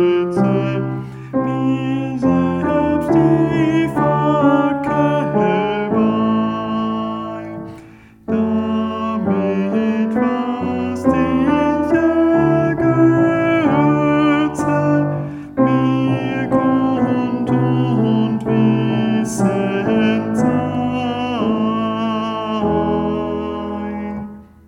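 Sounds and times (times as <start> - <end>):
tenor singing: 0.0 - 24.6.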